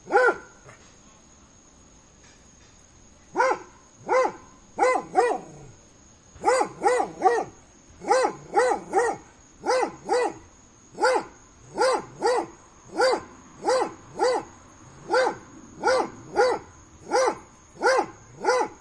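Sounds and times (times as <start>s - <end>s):
dog barking: 0.1s - 0.8s, 3.4s - 5.7s, 6.4s - 10.4s, 11.0s - 18.8s.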